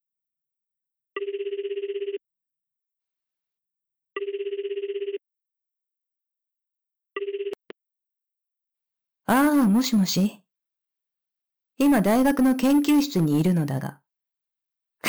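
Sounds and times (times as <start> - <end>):
telephone ringback heard on an outgoing call: 1.2 - 2.2, 4.2 - 5.2, 7.2 - 7.6
speech: 9.3 - 10.4, 11.8 - 14.0.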